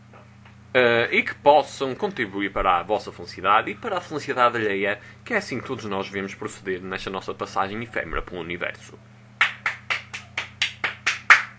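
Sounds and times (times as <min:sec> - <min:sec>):
faint low hum: 0:00.0 - 0:11.5
speech: 0:00.7 - 0:09.2
hand claps: 0:09.4 - 0:11.5.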